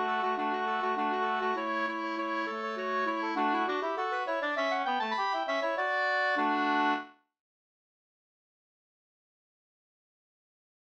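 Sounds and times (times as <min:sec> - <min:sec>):
slangpolska folk dance tune: 0:00.0 - 0:07.1.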